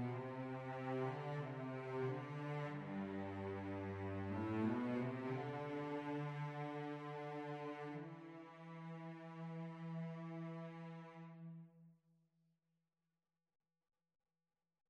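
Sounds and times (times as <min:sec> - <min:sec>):
string trio playing: 0:00.0 - 0:11.5.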